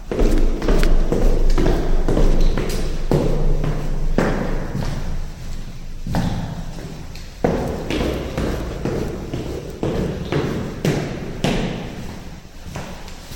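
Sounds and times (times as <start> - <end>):
man's footsteps descending stairs in a parking garage stairwell: 0.0 - 13.3.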